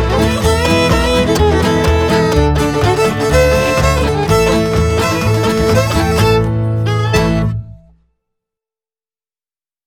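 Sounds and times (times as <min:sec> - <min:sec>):
southern hoedown music: 0:00.0 - 0:07.9.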